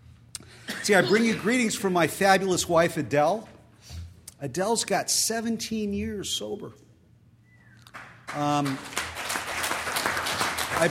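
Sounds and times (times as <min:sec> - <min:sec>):
speech: 0:00.8 - 0:03.5, 0:04.4 - 0:06.8, 0:08.4 - 0:09.0
audience clapping: 0:07.8 - 0:10.9.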